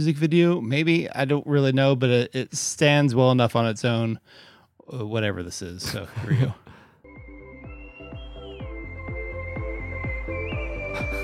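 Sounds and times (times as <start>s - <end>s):
speech: 0.0s - 6.7s
woman whistling on a rock in the desert: 7.1s - 11.2s.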